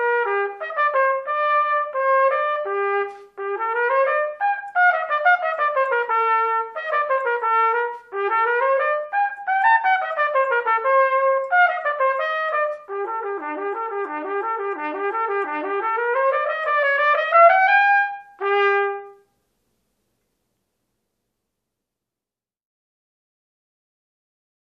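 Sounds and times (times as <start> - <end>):
solo trumpet etude: 0.0 - 19.4.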